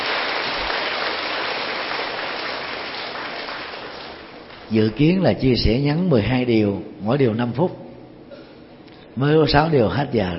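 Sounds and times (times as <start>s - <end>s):
audience applause: 0.0s - 4.4s
speech: 4.7s - 7.8s, 9.2s - 10.3s.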